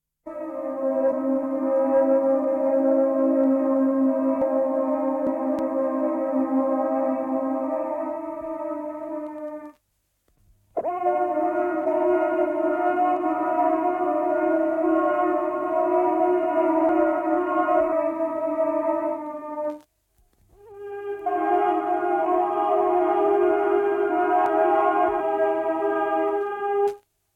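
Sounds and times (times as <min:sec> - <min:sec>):
building chords: 0:00.3 - 0:09.8, 0:10.8 - 0:19.8, 0:20.6 - 0:27.0.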